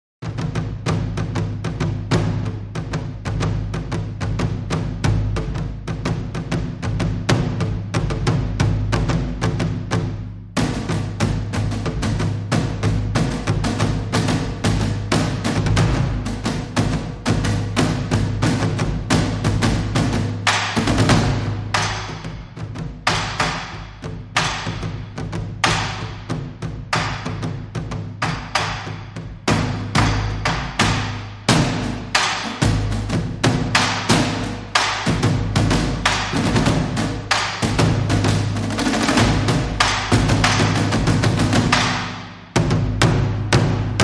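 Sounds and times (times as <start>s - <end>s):
light percussion: 0.2s - 44.0s.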